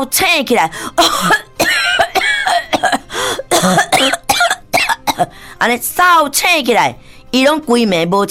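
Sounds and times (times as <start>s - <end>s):
speech: 0.0s - 1.5s, 3.6s - 3.9s, 5.6s - 8.2s
harsh coughing: 1.0s - 5.4s.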